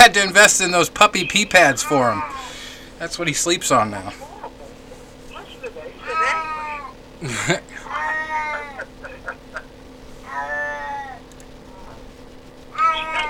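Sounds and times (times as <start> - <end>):
speech: 0.1 - 4.3, 7.2 - 7.9
cat meowing: 1.5 - 2.6, 6.0 - 7.0, 7.8 - 8.9, 10.2 - 12.1, 12.7 - 13.2
laughter: 3.8 - 9.8.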